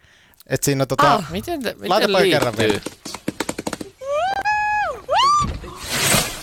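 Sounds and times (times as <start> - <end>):
speech: 0.4 - 3.0
monkey whooping: 4.0 - 5.8
monkey falling out of a tree with a rustling crash: 5.4 - 6.4.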